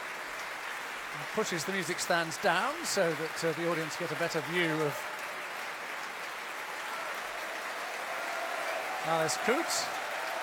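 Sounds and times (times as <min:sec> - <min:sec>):
audience and chorus applauding after a concert: 0:00.0 - 0:10.4
speech: 0:01.2 - 0:05.1, 0:09.0 - 0:10.0.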